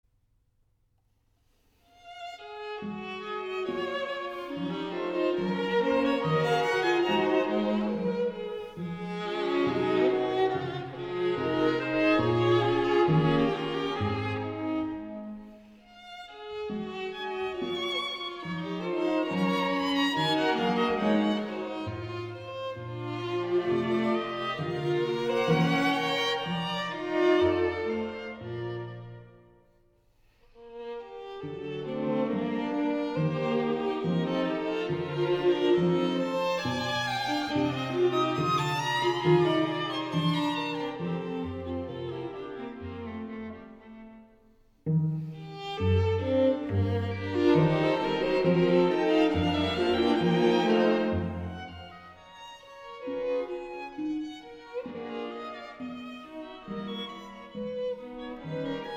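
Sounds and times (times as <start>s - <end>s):
string quintet in F major: 1.8s - 58.9s.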